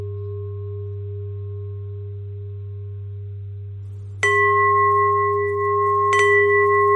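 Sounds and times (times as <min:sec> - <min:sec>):
bells ringing: 0:04.2 - 0:06.9.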